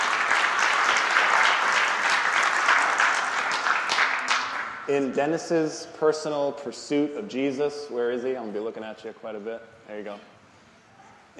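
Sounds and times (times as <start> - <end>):
audience applauding: 0.0 - 4.9
speech: 4.9 - 10.3.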